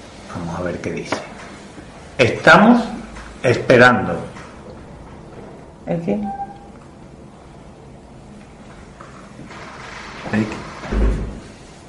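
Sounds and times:
speech: 0.4 - 1.4, 2.2 - 4.3, 5.9 - 6.4
door being banged hard: 10.0 - 11.5.

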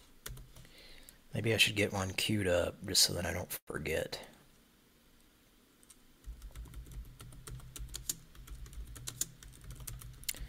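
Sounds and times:
typing on a computer keyboard: 0.2 - 0.7, 5.8 - 10.4
speech: 1.3 - 4.4.

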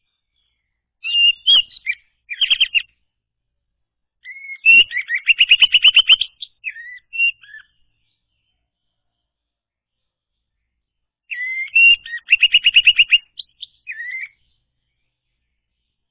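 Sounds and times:
orange-headed thrush whistled song: 0.0 - 3.0, 4.2 - 9.1, 11.2 - 16.0.

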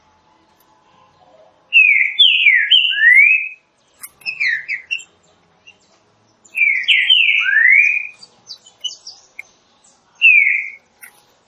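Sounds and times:
green-winged saltator song of slurred whistles: 1.7 - 3.6, 4.2 - 5.8, 6.5 - 9.4, 10.2 - 10.8.

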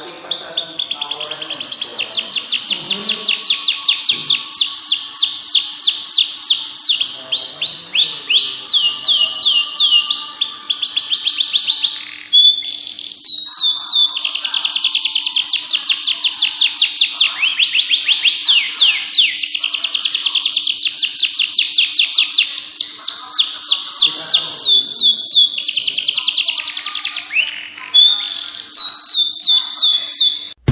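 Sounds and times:
canary singing: 0.0 - 30.6.

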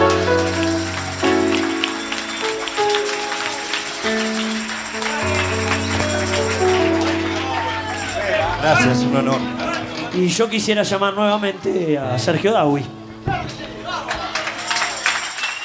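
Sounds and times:
sustained musical chords: 0.0 - 11.0
audience applause: 0.0 - 11.1, 13.7 - 15.6
speech: 9.1 - 9.6, 10.2 - 13.0.

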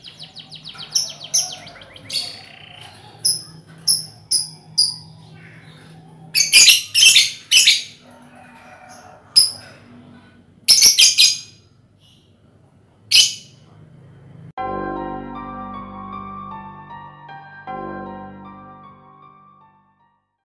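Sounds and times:
lovebird chirping and screeching: 0.0 - 8.0, 10.7 - 12.4, 13.1 - 13.6.

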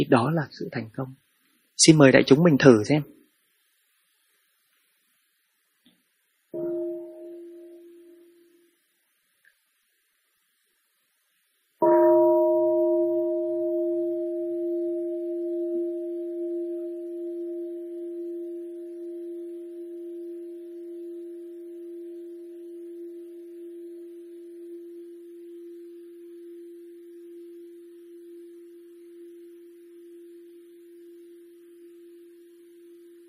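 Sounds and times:
speech: 0.0 - 3.2
meditation bell ringing: 6.6 - 8.7, 11.8 - 33.2.

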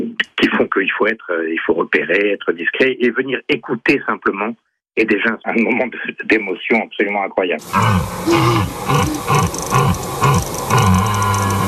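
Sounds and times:
speech: 0.6 - 11.0
stag bellowing: 7.6 - 11.6.

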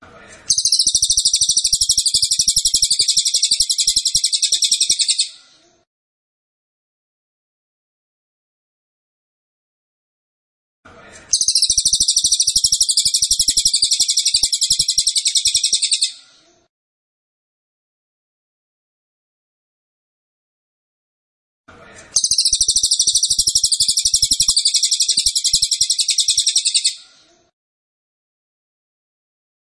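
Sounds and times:
cililin trilling song: 0.5 - 5.4, 11.3 - 16.2, 22.2 - 27.0.

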